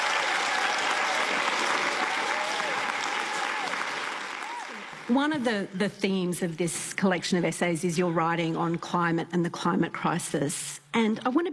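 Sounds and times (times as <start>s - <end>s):
audience applause welcoming Richard Flanagan at Byron Bay: 0.0s - 5.2s
speech: 5.1s - 11.5s.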